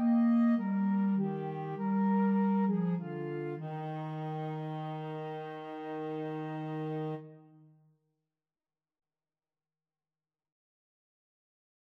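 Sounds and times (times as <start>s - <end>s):
flute and clarinet duet playing a carol: 0.0s - 7.4s.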